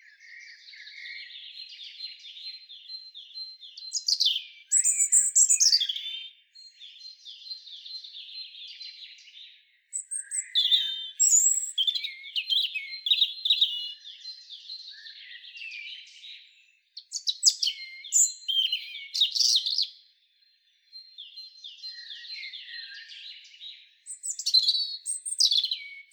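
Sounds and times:
European robin singing: 0.0 - 26.1.

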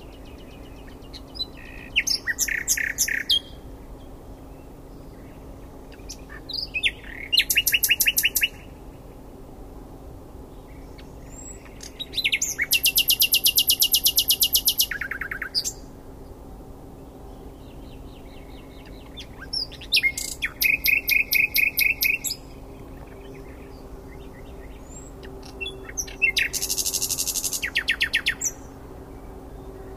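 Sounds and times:
common nightingale singing: 0.0 - 8.7, 10.5 - 15.9, 17.4 - 29.9.

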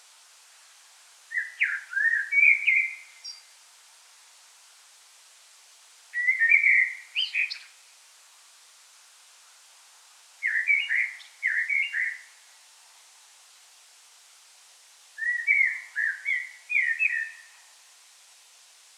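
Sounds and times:
common blackbird whistling: 1.3 - 3.4, 6.2 - 7.7, 10.4 - 12.2, 15.2 - 17.6.

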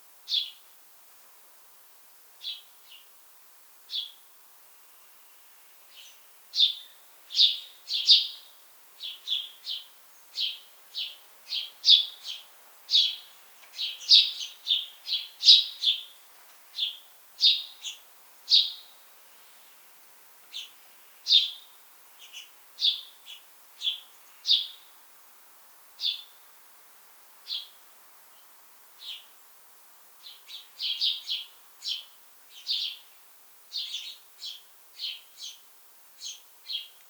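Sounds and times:
soft hissing background: 0.0 - 37.0
house sparrow chirps: 0.3 - 0.6, 5.9 - 16.1, 16.8 - 18.9, 20.5 - 21.6, 22.2 - 24.9, 26.0 - 26.4, 27.5 - 27.8, 29.0 - 29.3, 30.2 - 33.1, 33.7 - 35.6, 36.2 - 37.0.

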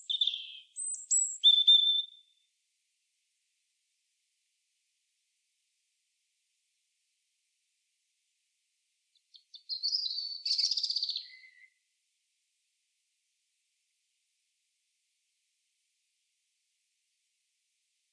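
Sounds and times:
European robin singing: 0.0 - 2.4, 9.3 - 11.8.

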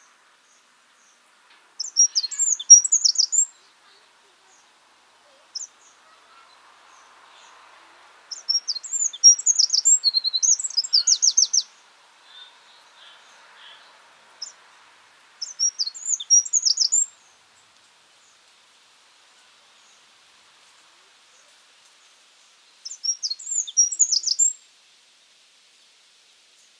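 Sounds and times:
faint steady hiss: 0.0 - 26.7
Eurasian wren twittering: 1.8 - 7.1, 8.3 - 13.2, 15.4 - 17.6, 22.8 - 24.6.

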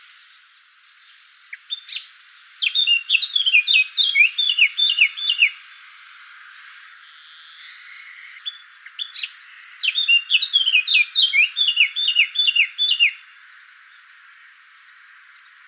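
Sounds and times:
Eurasian blackcap Sylvia atricapilla singing chattering phrases: 1.5 - 5.6, 7.5 - 13.2.

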